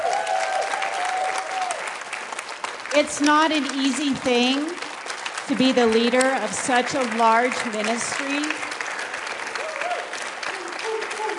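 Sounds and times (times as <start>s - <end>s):
audience applause at a ministry gathering: 0.0s - 11.3s
speech: 3.0s - 4.8s, 5.5s - 8.7s.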